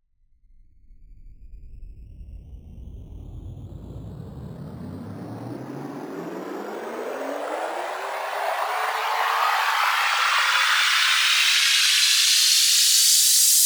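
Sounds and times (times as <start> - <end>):
riser sweep: 5.4 - 13.6.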